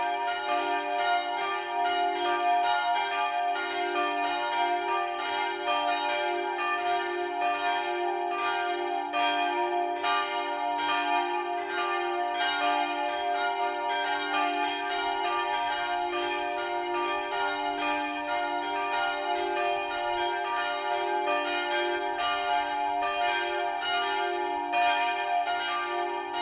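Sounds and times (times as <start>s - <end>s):
multi-voice peal of bells tuned d2 f2 g2: 0.0s - 26.4s.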